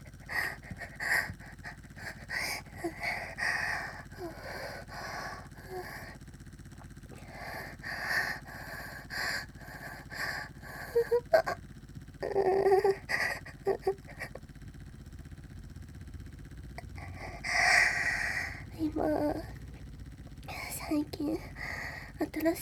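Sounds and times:
woman moaning with suction vibrator: 0:00.0 - 0:06.2, 0:07.2 - 0:11.6, 0:12.2 - 0:14.4, 0:16.7 - 0:19.7, 0:20.5 - 0:22.6
suction vibrator buzzing: 0:00.0 - 0:22.6.

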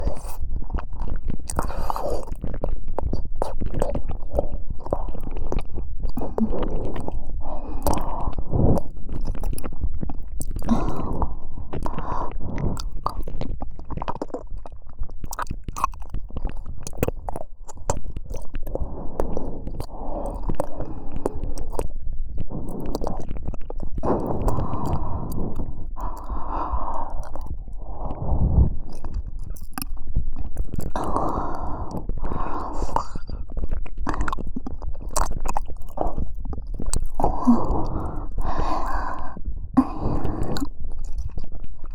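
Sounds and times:
deep ear licking in the right ear: 0:00.1 - 0:22.0, 0:22.6 - 0:27.8, 0:28.8 - 0:41.9.

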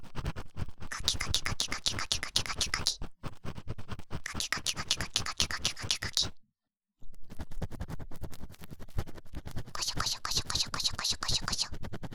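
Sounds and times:
ASMR ear cleaning of the left ear: 0:00.2 - 0:06.3, 0:08.7 - 0:11.9.

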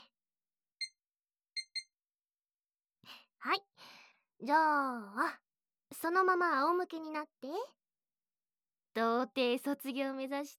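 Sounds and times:
kitchen timer being set beeping: 0:01.6 - 0:01.9
speech: 0:03.1 - 0:03.7, 0:04.4 - 0:07.8, 0:09.0 - 0:10.5.

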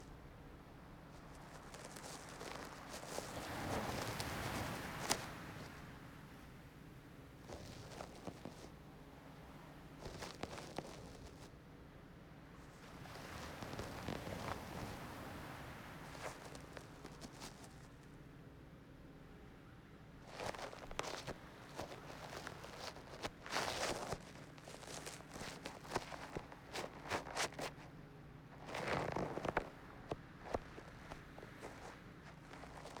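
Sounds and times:
ear cleaning with wave sounds in the right ear: 0:01.1 - 0:05.8, 0:07.5 - 0:08.7, 0:10.0 - 0:11.5, 0:12.8 - 0:15.0, 0:16.0 - 0:18.0, 0:20.2 - 0:27.9, 0:28.5 - 0:32.9.

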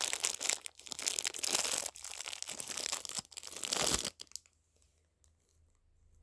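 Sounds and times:
crinkly package torn open: 0:00.0 - 0:04.5.

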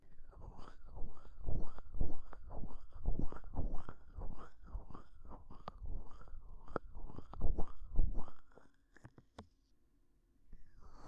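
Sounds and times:
ASMR ear cleaning: 0:00.3 - 0:09.1.

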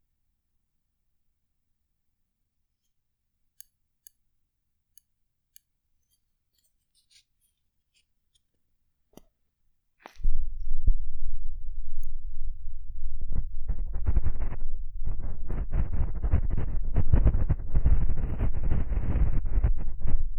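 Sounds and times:
ear cleaning sounds without voice: 0:13.2 - 0:20.3.

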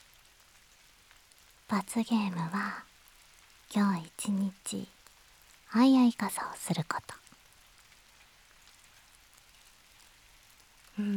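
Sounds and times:
steady rain pattering on a surface: 0:00.0 - 0:11.1
speech: 0:01.7 - 0:02.9, 0:03.7 - 0:05.0, 0:05.7 - 0:07.2, 0:11.0 - 0:11.1.

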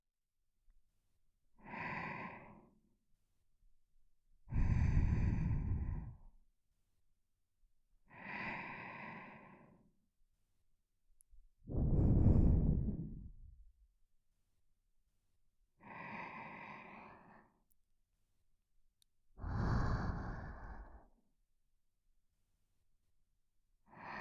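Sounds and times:
person breathing in sleep: 0:01.6 - 0:02.8, 0:04.5 - 0:06.3, 0:08.1 - 0:09.9, 0:11.7 - 0:13.6, 0:15.8 - 0:17.6, 0:19.4 - 0:21.2, 0:23.9 - 0:24.1.

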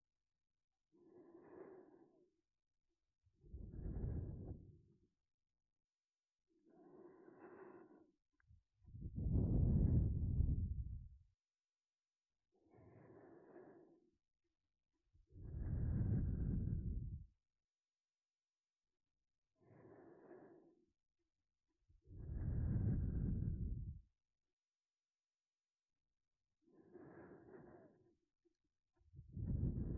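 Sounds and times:
sleep breathing loop: 0:01.0 - 0:02.3, 0:03.6 - 0:04.8, 0:06.7 - 0:08.2, 0:09.2 - 0:10.8, 0:12.7 - 0:14.1, 0:15.4 - 0:17.2, 0:19.6 - 0:20.8, 0:22.2 - 0:24.0, 0:26.7 - 0:28.1, 0:29.3 - 0:29.9.

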